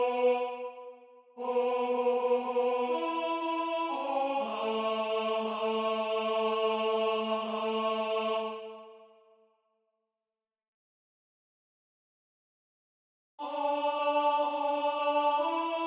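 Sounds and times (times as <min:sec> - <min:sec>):
tenor singing: 0:00.0 - 0:09.0, 0:13.4 - 0:15.8.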